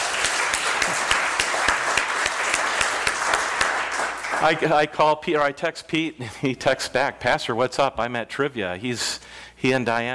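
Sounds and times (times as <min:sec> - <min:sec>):
audience applause: 0:00.0 - 0:04.9
speech: 0:04.4 - 0:10.1.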